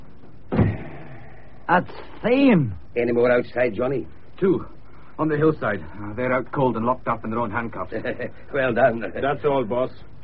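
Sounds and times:
door slamming shut: 0:00.5 - 0:01.0
speech: 0:01.7 - 0:10.2.

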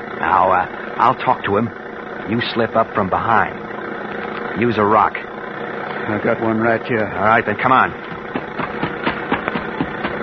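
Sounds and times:
car engine running: 0:00.0 - 0:10.2
speech: 0:00.2 - 0:03.6, 0:04.6 - 0:05.2, 0:06.1 - 0:08.1.

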